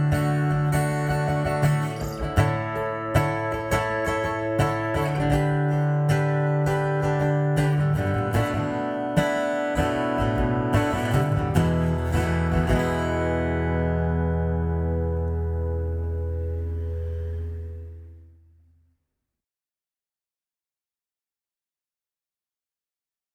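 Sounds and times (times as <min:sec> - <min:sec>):
acoustic folk music: 0:00.0 - 0:18.2.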